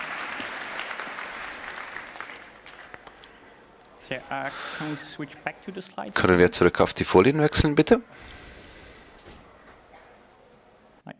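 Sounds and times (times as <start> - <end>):
audience applause in a hall: 0.0 - 3.9
speech: 4.1 - 8.4.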